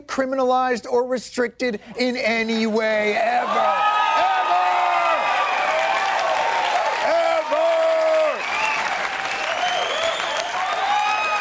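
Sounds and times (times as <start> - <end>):
speech: 0.2 - 4.2
crowd noise: 2.6 - 11.3
audience applause: 3.4 - 11.3.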